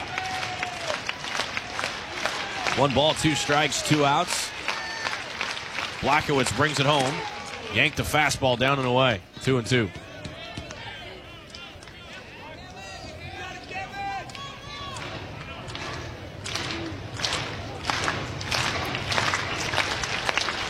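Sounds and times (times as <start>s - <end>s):
rhythmic clapping: 0.0s - 8.1s, 14.3s - 20.6s
stadium crowd roaring: 0.0s - 20.6s
speech: 2.8s - 4.5s, 6.0s - 10.0s.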